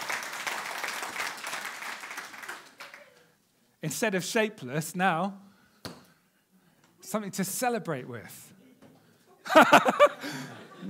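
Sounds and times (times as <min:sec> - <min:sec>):
audience applause: 0:00.0 - 0:03.2
speech: 0:03.8 - 0:05.5, 0:07.1 - 0:08.6, 0:09.5 - 0:10.8
laughter: 0:09.4 - 0:10.8.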